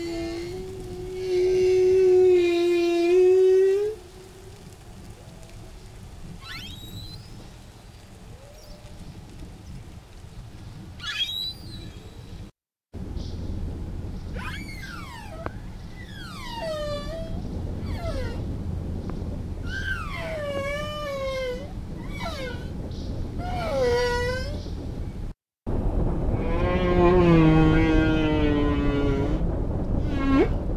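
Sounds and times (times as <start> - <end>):
humpback whale song on an Antarctic feeding ground during foraging: 0.0 - 5.4, 14.4 - 18.4, 19.6 - 24.8, 26.4 - 30.6.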